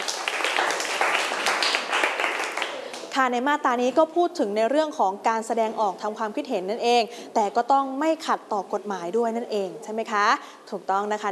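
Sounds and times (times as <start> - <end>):
classroom applause for a student: 0.0 - 3.1
speech: 3.2 - 11.2.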